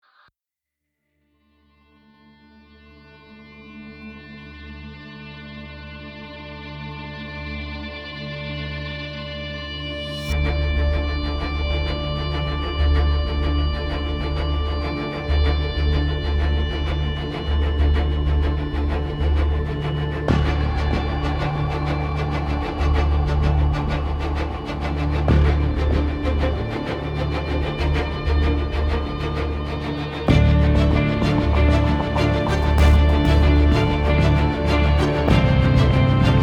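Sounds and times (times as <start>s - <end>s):
hybrid trailer music: 10.3s - 36.4s.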